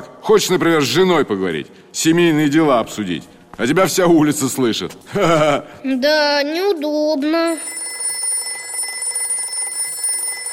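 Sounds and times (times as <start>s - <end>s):
speech: 0.3s - 7.8s
telephone bell ringing: 7.5s - 10.5s.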